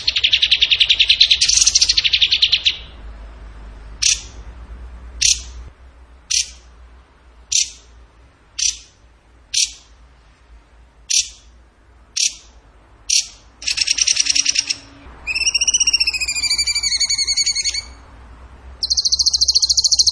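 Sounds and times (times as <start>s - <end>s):
bird singing: 0.0s - 3.0s, 4.0s - 4.4s, 5.2s - 5.6s, 6.3s - 6.6s, 7.5s - 7.9s, 8.6s - 9.9s, 11.1s - 11.5s, 12.2s - 18.1s, 18.8s - 20.1s.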